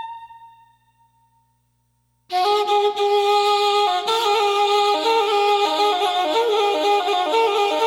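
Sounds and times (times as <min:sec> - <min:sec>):
Dastgah-e Shoor instrumental music: 0:02.3 - 0:07.8.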